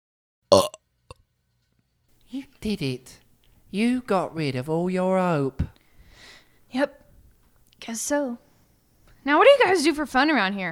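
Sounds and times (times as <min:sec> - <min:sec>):
burp: 0:00.5 - 0:00.8
speech: 0:00.5 - 0:00.8, 0:02.3 - 0:05.7, 0:06.7 - 0:07.0, 0:07.8 - 0:08.4, 0:09.2 - 0:10.6.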